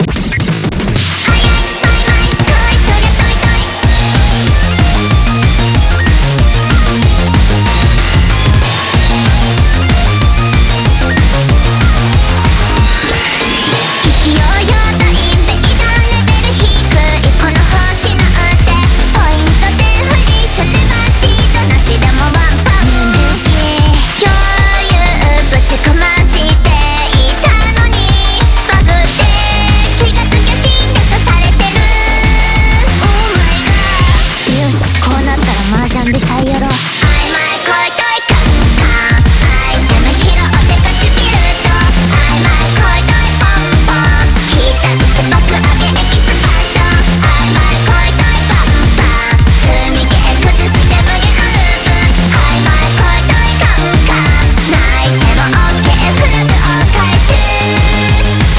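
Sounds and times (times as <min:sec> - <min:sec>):
background music: 0:00.0 - 0:58.5.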